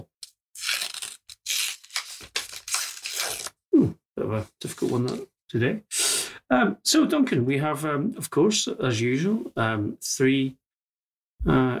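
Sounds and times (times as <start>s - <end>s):
paper envelope torn open: 0.2s - 3.6s
speech: 3.8s - 10.6s, 11.4s - 11.7s.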